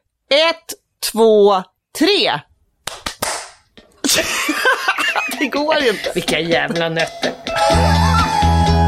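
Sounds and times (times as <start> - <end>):
speech: 0.3 - 2.5, 4.1 - 4.4, 5.4 - 7.9
group hand clap in unison: 2.8 - 3.6
laughter: 4.0 - 8.7.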